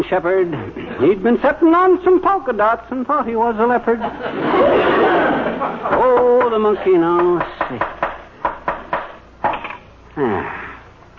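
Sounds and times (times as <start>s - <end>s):
speech: 0.0s - 8.0s, 10.2s - 10.6s
laughter: 3.9s - 7.2s
hammering nails into wooden frame: 7.2s - 9.6s.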